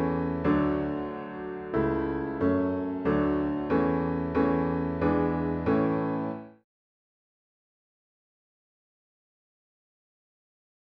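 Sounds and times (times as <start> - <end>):
piano: 0.0 - 6.6.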